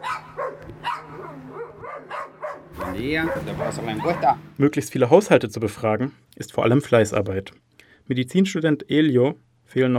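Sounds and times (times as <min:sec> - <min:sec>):
dogs barking at a front door: 0:00.0 - 0:04.4
speech: 0:03.0 - 0:09.9.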